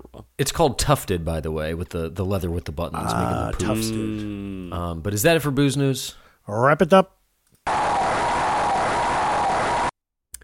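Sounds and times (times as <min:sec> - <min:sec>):
speech: 0:00.4 - 0:07.2
synthesized crowd cheer from the NES game Mike Tyson's Punch-Out: 0:07.7 - 0:09.9.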